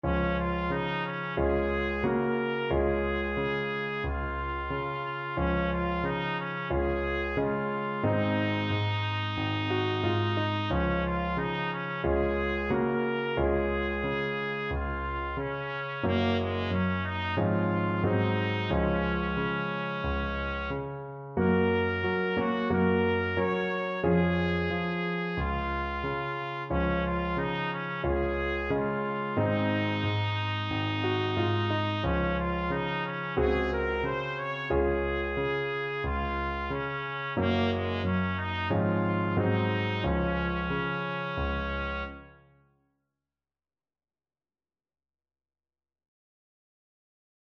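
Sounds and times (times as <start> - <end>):
trumpet: 0.0 - 42.5.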